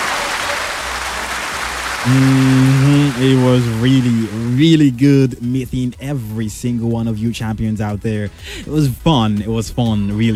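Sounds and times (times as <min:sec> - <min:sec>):
round of applause: 0:00.0 - 0:04.6
speech: 0:02.0 - 0:10.3.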